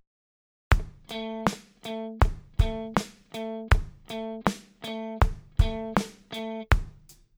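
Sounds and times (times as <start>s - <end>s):
groove music: 0.7s - 6.9s.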